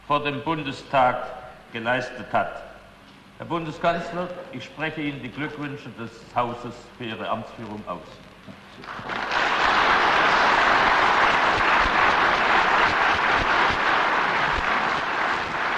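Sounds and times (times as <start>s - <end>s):
speech: 0.1s - 2.7s, 3.4s - 9.4s
members of the German Bundestag applauding the newly sworn-in chancellor: 8.8s - 15.7s.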